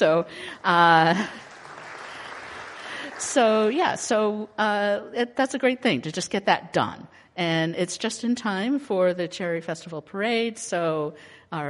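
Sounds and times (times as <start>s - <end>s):
speech: 0.0s - 1.5s, 3.2s - 11.6s
audience applauding a building and grounds team: 0.6s - 4.0s.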